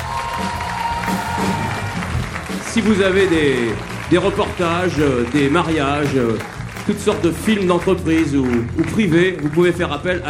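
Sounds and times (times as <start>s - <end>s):
audience applause: 0.0s - 10.2s
speech: 2.8s - 10.2s.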